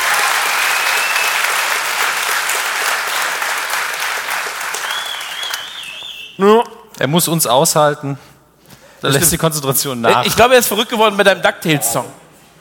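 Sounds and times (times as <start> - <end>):
audience applause: 0.0 - 6.2
faint whistle-like tone: 4.8 - 6.4
speech: 6.4 - 8.3, 9.0 - 12.2.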